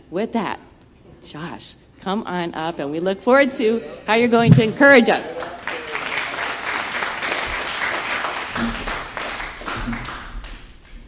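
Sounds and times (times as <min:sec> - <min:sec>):
speech: 0:00.1 - 0:00.6, 0:01.2 - 0:05.5
faint low thumps: 0:04.4 - 0:05.0
audience applause: 0:05.1 - 0:10.7.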